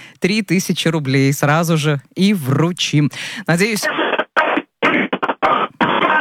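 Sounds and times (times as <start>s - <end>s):
speech: 0.2s - 4.1s
radio station anthem played instead of ringback: 3.8s - 6.2s.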